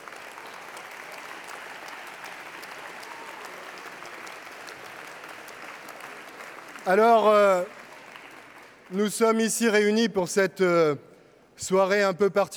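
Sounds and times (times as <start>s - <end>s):
audience applause: 0.0s - 9.0s
speech: 6.9s - 7.8s, 8.9s - 12.5s.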